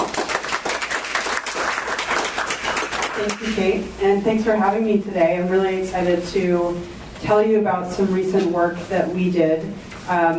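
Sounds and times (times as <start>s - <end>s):
audience applause welcoming a speaker at a transportation research presentation: 0.0s - 3.5s
speech: 3.2s - 10.3s.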